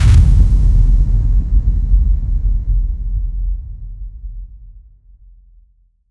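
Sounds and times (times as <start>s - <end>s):
impact: 0.0s - 3.2s.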